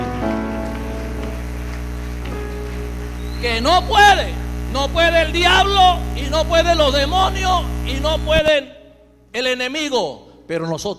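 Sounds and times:
audience applauding: 0.0 - 3.4
speech: 3.4 - 10.9.

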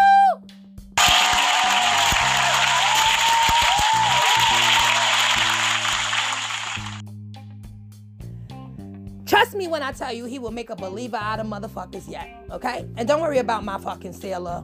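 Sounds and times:
crowd applause: 1.0 - 7.0
speech: 9.6 - 14.6.

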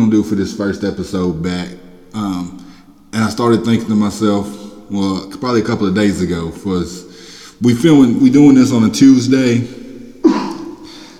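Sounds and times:
speech: 0.1 - 9.8
man coughing in the background: 10.2 - 11.1.

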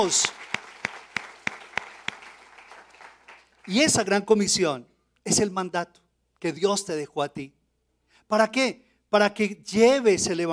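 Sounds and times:
speech: 0.0 - 0.4, 3.7 - 7.6, 8.3 - 10.5
audience applause: 0.0 - 3.7.

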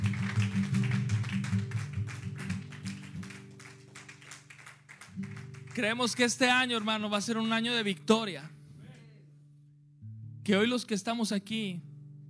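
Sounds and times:
crowd clapping: 0.0 - 7.4
speech: 5.8 - 8.6, 10.5 - 11.9.

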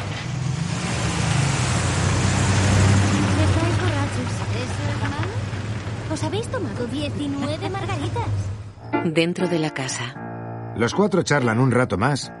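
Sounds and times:
car engine rumble and road noise pulling into a residential plot: 0.0 - 8.9
speech: 6.3 - 10.2, 10.8 - 12.3.

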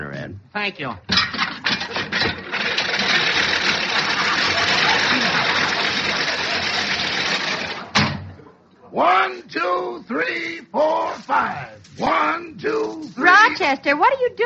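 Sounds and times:
speech: 0.2 - 1.1, 8.9 - 14.4
lawnmower engine running: 1.8 - 8.0
sharp clunk: 7.9 - 8.4.

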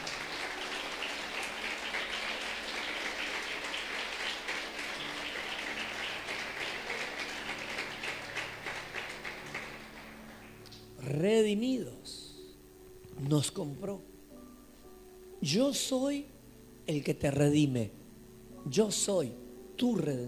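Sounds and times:
audience applause: 0.0 - 10.9
speech: 11.2 - 12.2, 13.3 - 14.1, 15.4 - 18.0, 18.6 - 20.2.

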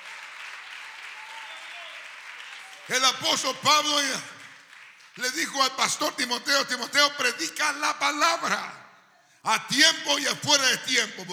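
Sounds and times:
audience applauding: 0.0 - 5.8
speech: 2.9 - 4.4, 5.2 - 8.8, 9.4 - 11.3.

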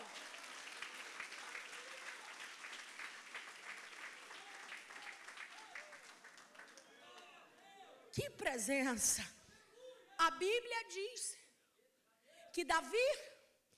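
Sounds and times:
audience applauding: 0.0 - 7.6
speech: 8.2 - 9.4, 10.3 - 11.4, 12.6 - 13.3.

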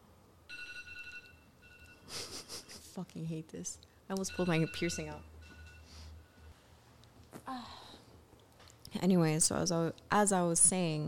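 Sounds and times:
speech: 3.0 - 5.3, 7.5 - 7.8, 8.9 - 11.0
timer going off: 4.1 - 6.0.

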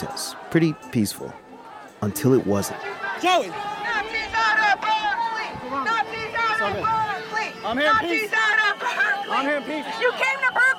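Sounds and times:
protest crowd yelling and chasing: 0.0 - 10.7
speech: 0.5 - 1.4, 2.0 - 3.8, 6.7 - 10.6.

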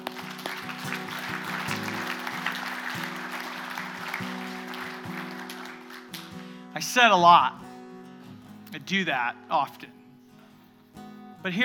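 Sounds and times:
audience clapping: 0.0 - 6.6
speech: 6.8 - 7.6, 8.7 - 10.0, 11.4 - 11.6.

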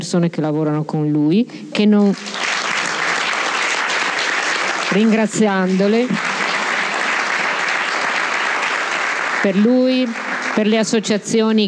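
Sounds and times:
speech: 0.0 - 2.5, 4.9 - 6.3, 9.4 - 11.6
audience applause: 2.0 - 11.0.

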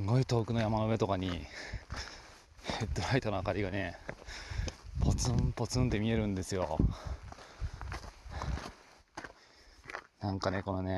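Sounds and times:
speech: 0.0 - 2.1, 2.8 - 7.2, 10.2 - 10.9
crunching footsteps of a hiker on a mountain trail in Japan's Southern Alps: 0.0 - 10.7.

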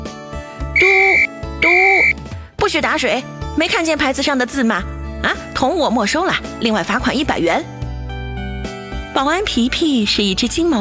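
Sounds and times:
shrill whistle blasts: 0.8 - 2.2
speech: 2.6 - 7.7, 9.2 - 10.8.

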